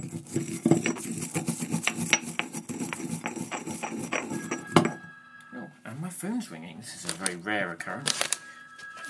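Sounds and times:
grinding in a hand grinder: 0.0s - 4.7s
speech: 6.3s - 8.4s.

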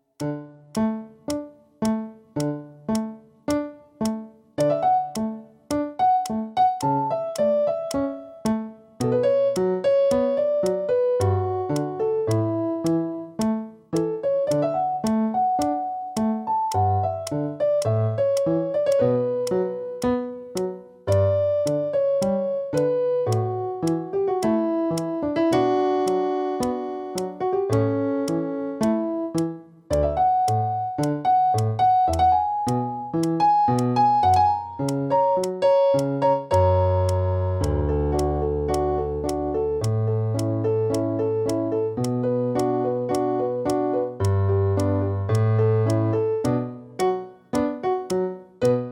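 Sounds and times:
piano: 0.0s - 48.9s.

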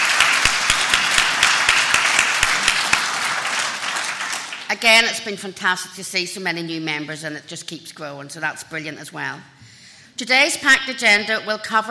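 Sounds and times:
conference audience applause: 0.0s - 4.7s
speech: 4.7s - 9.6s, 10.2s - 11.8s.

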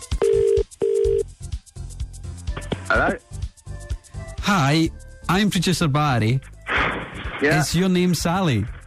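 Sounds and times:
outgoing call's ringback tone: 0.2s - 1.3s
speech: 2.9s - 3.3s, 4.5s - 6.5s, 7.4s - 8.8s.

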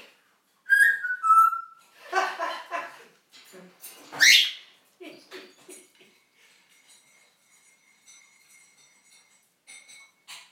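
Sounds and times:
parrot whistling and mimicking household noises: 0.7s - 1.8s, 4.2s - 4.6s
spoon clinking in a cup: 6.5s - 10.5s.

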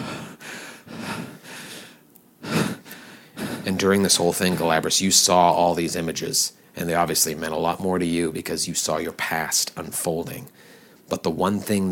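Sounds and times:
heavy panicked breathing: 0.0s - 3.8s
speech: 3.7s - 11.8s.

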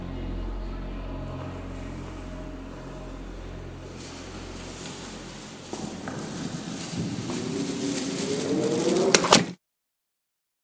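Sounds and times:
remixed chanting: 0.0s - 9.6s
remixed footsteps on stairs: 4.0s - 9.5s.

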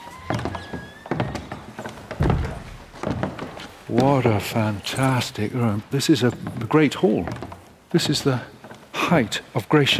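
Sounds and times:
heavy oak door opening and closing: 0.0s - 3.8s
speech: 3.9s - 9.9s.

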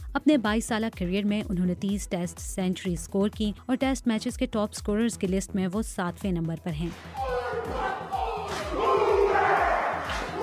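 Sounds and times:
speech: 0.2s - 7.8s
Maori haka war dance shouting: 6.9s - 10.4s.

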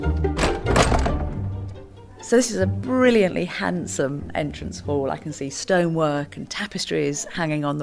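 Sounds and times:
heavy wooden front door opening: 0.2s - 1.5s
speech: 2.3s - 7.8s.

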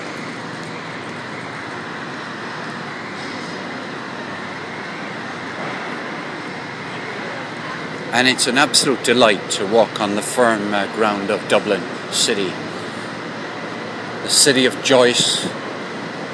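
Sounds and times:
busy railway station platform with trains at Dublin Euston: 0.0s - 16.3s
speech: 8.1s - 12.8s, 14.3s - 15.6s.

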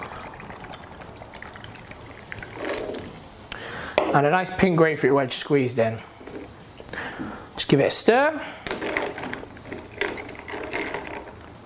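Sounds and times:
San Pellegrino blood orange sparkling drink pouring over ice into a spritz: 0.0s - 3.3s
speech: 4.2s - 6.1s, 7.7s - 8.8s.

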